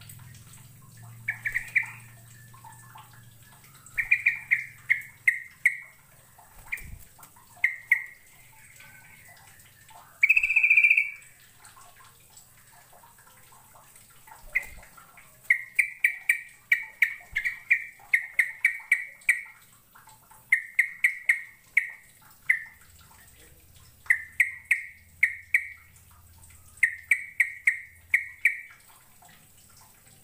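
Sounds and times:
soft watery sounds: 0.0 - 30.2
bird chirping: 1.0 - 7.0, 7.6 - 11.3, 14.4 - 14.8, 15.4 - 19.6, 20.5 - 22.8, 24.1 - 25.9, 26.8 - 28.7.

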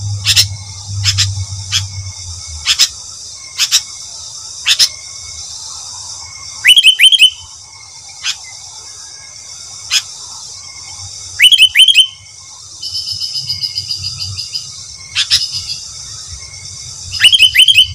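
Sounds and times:
sooty-headed bulbul singing: 0.0 - 5.4, 6.6 - 7.6, 11.4 - 17.9.

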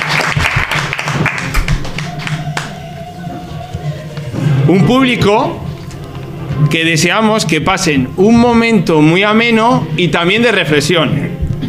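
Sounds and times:
studio audience applauding at a talk show about mental health: 0.0 - 2.8
speech: 4.7 - 5.6, 6.6 - 11.4.

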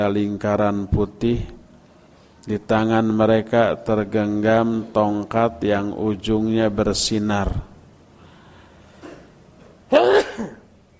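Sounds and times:
speech: 0.0 - 1.6, 2.4 - 7.7
faint intake of breath: 8.1 - 9.5
sneeze: 9.9 - 10.7.

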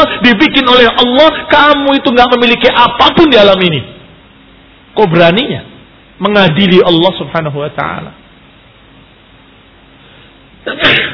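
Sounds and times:
speech: 0.2 - 4.0, 5.0 - 8.2, 10.6 - 11.1
sneeze: 10.6 - 11.1.

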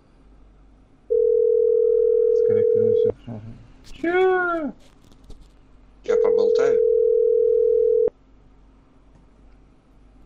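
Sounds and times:
telephone dial tone: 1.1 - 3.0, 6.8 - 8.1
speech: 3.8 - 4.9.

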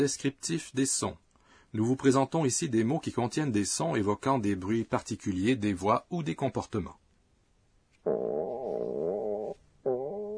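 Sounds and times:
speech: 0.0 - 7.0
voice imitating a hungry stomach growling: 8.0 - 10.3.

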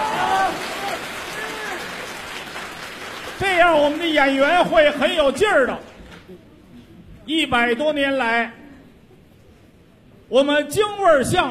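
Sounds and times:
audience applause: 0.0 - 5.1
speech: 3.4 - 6.4, 7.3 - 8.6, 10.3 - 11.4.

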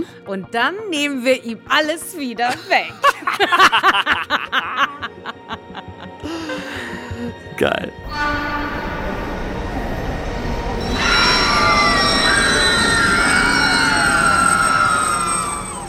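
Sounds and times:
speech: 0.3 - 4.8, 7.6 - 8.6
laughter: 2.5 - 7.3
subway train rumbling: 8.0 - 15.8
loud sustained subway train horn: 8.1 - 15.8.

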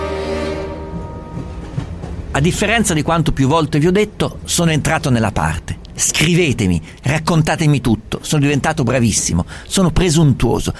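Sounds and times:
moving train: 0.0 - 7.3
speech: 2.4 - 10.7.

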